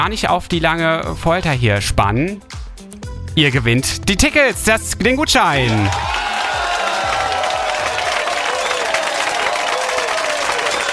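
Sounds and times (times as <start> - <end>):
speech: 0.0 - 2.6, 3.4 - 6.2
audience cheering: 5.5 - 10.9.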